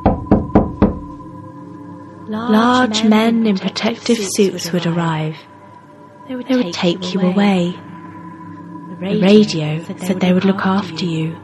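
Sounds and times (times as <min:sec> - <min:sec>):
knocking on a front door: 0:00.0 - 0:01.1
speech: 0:02.3 - 0:05.5, 0:06.3 - 0:07.9, 0:09.0 - 0:11.4.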